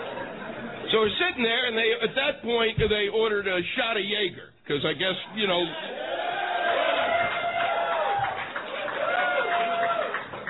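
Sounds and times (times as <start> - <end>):
speech: 0.9 - 6.2
audience applauding: 6.3 - 10.4.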